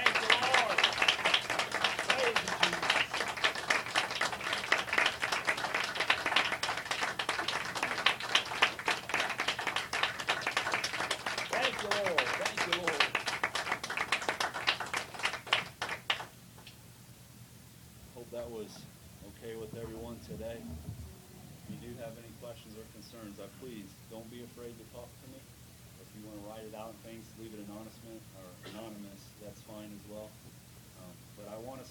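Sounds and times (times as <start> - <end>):
audience clapping: 0.0 - 16.7.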